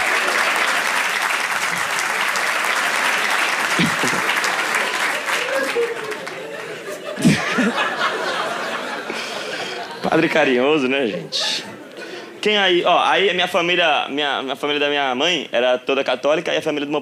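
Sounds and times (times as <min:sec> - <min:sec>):
audience applause: 0:00.0 - 0:09.9
laughter: 0:03.7 - 0:10.4
speech: 0:10.1 - 0:11.7, 0:12.4 - 0:17.0.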